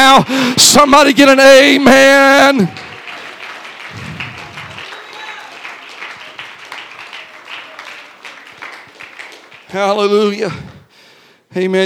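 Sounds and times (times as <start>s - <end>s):
speech: 0.2s - 2.8s, 9.7s - 10.7s, 11.5s - 11.8s
audience clapping hands in applause: 1.6s - 10.9s.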